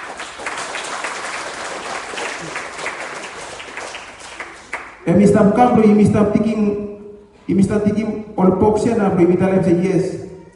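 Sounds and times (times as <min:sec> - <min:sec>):
audience clapping: 0:00.0 - 0:05.1
speech: 0:05.0 - 0:06.9, 0:07.5 - 0:10.5.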